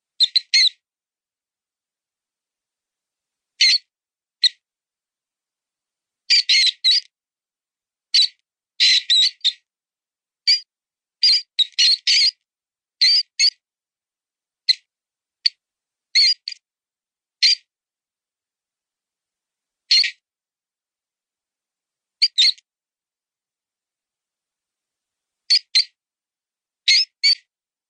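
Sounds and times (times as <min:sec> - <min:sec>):
mouse sound: 0:00.2 - 0:00.8, 0:03.6 - 0:04.6, 0:06.3 - 0:07.1, 0:08.1 - 0:09.6, 0:10.5 - 0:12.4, 0:13.0 - 0:13.6, 0:14.7 - 0:16.6, 0:17.4 - 0:17.7, 0:19.9 - 0:20.2, 0:22.2 - 0:22.7, 0:25.5 - 0:26.0, 0:26.8 - 0:27.5.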